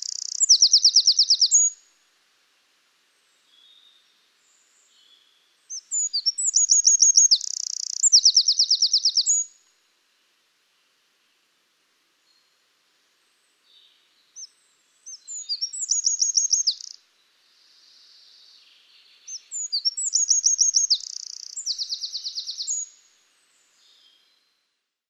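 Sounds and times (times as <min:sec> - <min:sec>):
Eurasian wren song with rapid trills: 0:00.0 - 0:01.8, 0:03.2 - 0:09.6, 0:13.7 - 0:24.6
faint hiss: 0:00.0 - 0:25.0.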